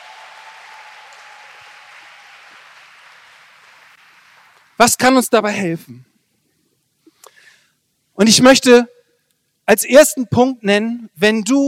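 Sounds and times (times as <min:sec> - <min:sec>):
audience applause for the band: 0:00.0 - 0:04.8
speech: 0:04.8 - 0:06.1, 0:08.2 - 0:08.9, 0:09.7 - 0:11.6.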